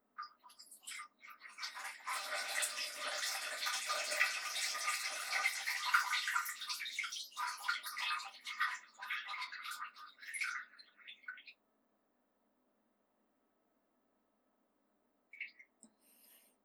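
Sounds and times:
urinating in a toilet: 0.0 - 11.6.

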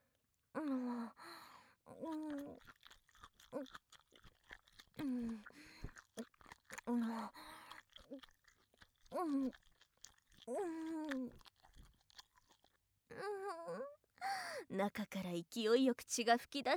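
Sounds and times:
breathy moans, gasps and sighs from a voice: 0.5 - 2.6, 5.0 - 8.3, 9.1 - 9.6, 10.4 - 11.4, 13.1 - 14.7
speech: 0.6 - 2.8, 3.5 - 3.9, 5.0 - 5.7, 6.9 - 7.5, 9.1 - 9.6, 10.4 - 11.5, 13.2 - 16.7
heart being chewed and eaten in a horror audio drama: 1.9 - 13.2.

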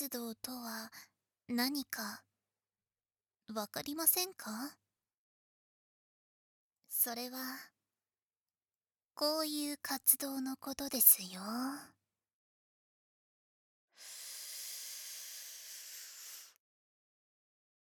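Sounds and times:
speech: 0.0 - 2.3, 3.5 - 4.8, 6.9 - 7.7, 9.2 - 12.0
breath blown into the ear: 14.0 - 16.6.

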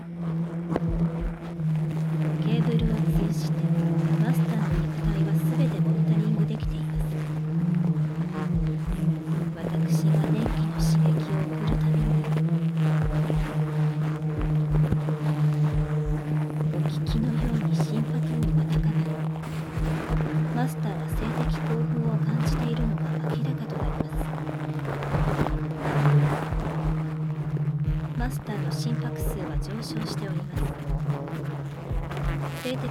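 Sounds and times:
heartbeat: 0.6 - 32.8.

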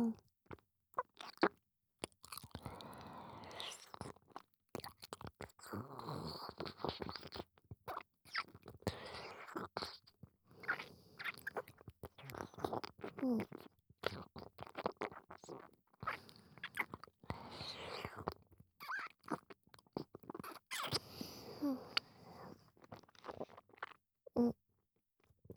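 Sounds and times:
chewing and eating sticky food against the microphone: 0.1 - 22.1, 22.7 - 24.4.

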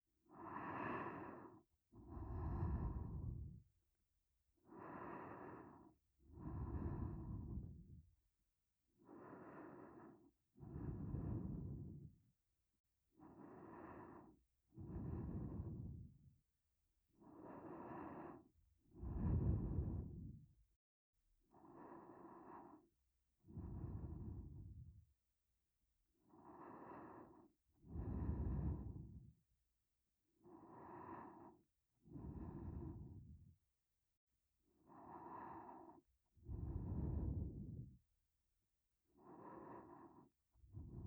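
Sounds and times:
sleep breathing loop: 0.4 - 3.6, 4.7 - 8.0, 9.1 - 12.1, 13.2 - 16.2, 17.3 - 20.4, 21.6 - 22.9, 23.5 - 24.9, 26.4 - 29.2, 30.5 - 33.5, 34.8 - 38.0, 39.2 - 41.0.

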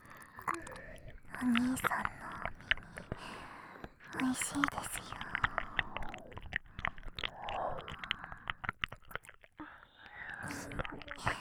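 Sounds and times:
ASMR ear nibbling with moist bites, chews and clicks: 0.0 - 11.3
soft ASMR whispering: 0.5 - 3.2, 4.0 - 6.6, 10.0 - 11.3
speech: 1.4 - 2.2, 4.2 - 5.1.

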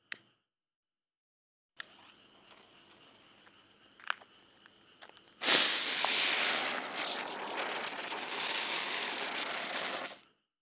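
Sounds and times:
koma spinning firework: 1.9 - 4.3, 5.2 - 10.2.

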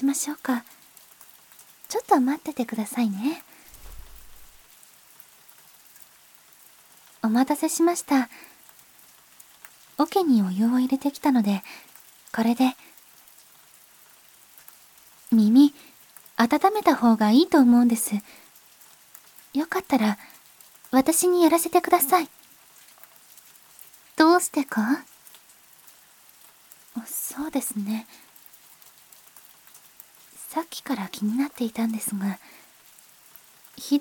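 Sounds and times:
rain sounds: 0.0 - 34.0.

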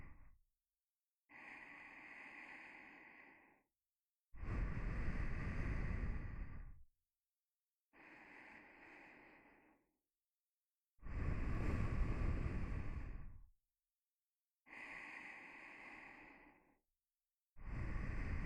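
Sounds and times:
nose breathing while lying beside: 1.3 - 3.6, 4.4 - 6.7, 8.0 - 9.8, 11.0 - 13.3, 14.7 - 16.8, 17.6 - 18.4.

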